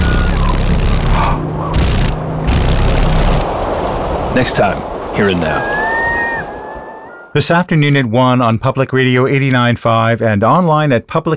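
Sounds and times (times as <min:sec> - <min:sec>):
dragonfly wings vibrating rapidly: 0:00.0 - 0:03.5
low droning hum: 0:00.0 - 0:05.1
speech: 0:04.4 - 0:05.8, 0:07.4 - 0:11.3.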